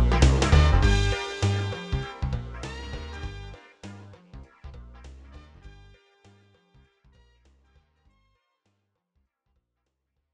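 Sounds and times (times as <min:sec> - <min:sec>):
funk music: 0:00.0 - 0:07.6.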